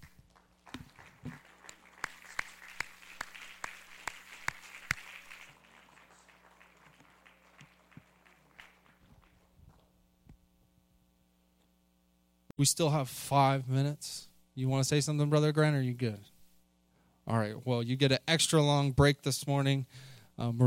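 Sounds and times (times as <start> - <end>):
audience clapping: 0.0 - 9.9
speech: 12.6 - 16.3, 17.3 - 20.6.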